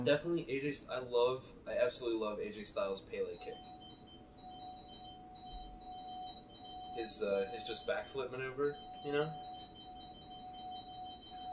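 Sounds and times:
speech: 0:00.0 - 0:03.8, 0:07.0 - 0:09.5
bell being rung: 0:03.4 - 0:11.5.

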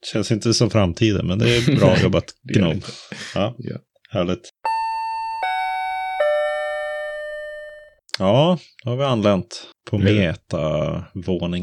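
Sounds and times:
speech: 0:00.0 - 0:04.6, 0:08.2 - 0:11.6
laughter: 0:01.4 - 0:02.2
doorbell or elevator chime: 0:04.7 - 0:08.0.

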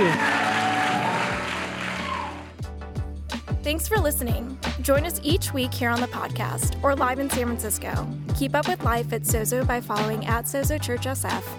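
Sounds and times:
audience applause: 0:00.0 - 0:02.6
speech: 0:03.6 - 0:11.5.

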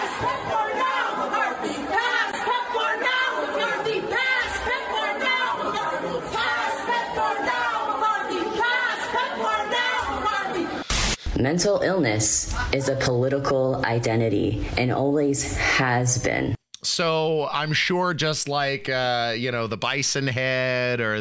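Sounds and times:
crowd chanting in an office: 0:00.0 - 0:10.9
speech: 0:00.2 - 0:00.6, 0:11.4 - 0:21.1.

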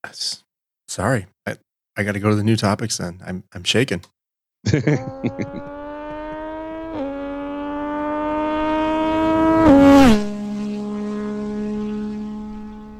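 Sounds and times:
speech: 0:00.1 - 0:00.4, 0:01.0 - 0:05.7
laughter: 0:04.7 - 0:05.7
Yamaha MT-09 with full Arrow exhaust system making a flyby: 0:04.9 - 0:12.9.

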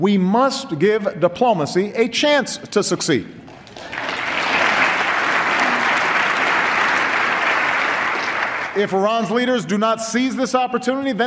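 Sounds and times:
speech: 0:00.0 - 0:04.0, 0:08.8 - 0:11.2
audience applause: 0:03.5 - 0:08.8.

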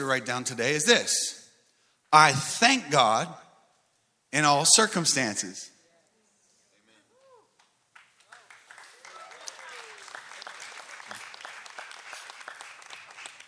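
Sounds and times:
speech: 0:00.0 - 0:01.4, 0:02.1 - 0:03.4, 0:04.3 - 0:05.7
whoops or chirpy vocal sounds: 0:07.1 - 0:07.6, 0:09.0 - 0:10.1
soft respectful golf clap applause: 0:07.6 - 0:13.4.

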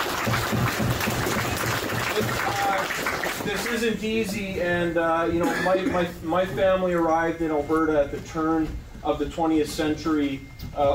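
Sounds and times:
audience applause: 0:00.0 - 0:03.9
speech: 0:03.5 - 0:10.9.

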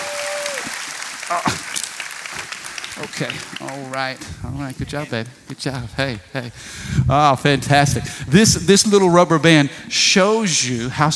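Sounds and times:
audience clapping hands: 0:00.0 - 0:05.3
speech: 0:01.3 - 0:01.8, 0:03.0 - 0:11.1.

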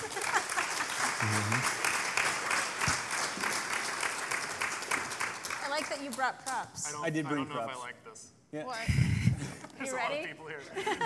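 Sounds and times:
live audience applause: 0:00.0 - 0:06.6
speech: 0:01.2 - 0:01.8, 0:06.1 - 0:11.0
laughter: 0:10.6 - 0:11.0.

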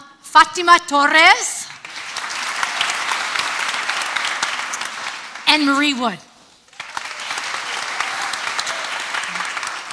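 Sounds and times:
speech: 0:00.4 - 0:01.6, 0:05.5 - 0:06.3
audience applause: 0:01.8 - 0:05.8, 0:06.7 - 0:09.9.

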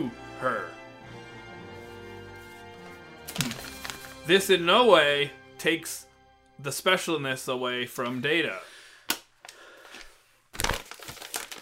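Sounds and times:
speech: 0:00.0 - 0:00.8, 0:03.4 - 0:03.6, 0:04.3 - 0:08.7
paper rattling: 0:03.3 - 0:04.3, 0:10.5 - 0:11.5.

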